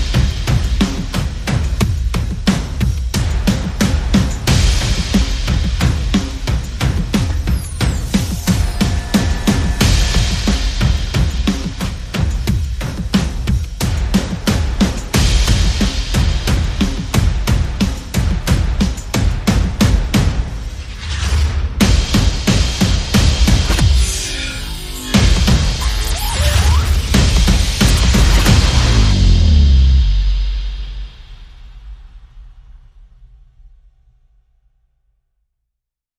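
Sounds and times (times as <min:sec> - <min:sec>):
percussion: 0:00.0 - 0:34.6
sound effects: 0:07.1 - 0:11.2, 0:23.5 - 0:31.0.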